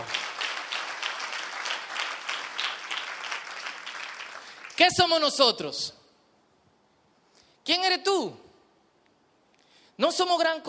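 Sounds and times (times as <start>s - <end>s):
audience applause: 0.0s - 4.8s
speech: 4.8s - 6.0s, 7.7s - 8.4s, 10.0s - 10.6s.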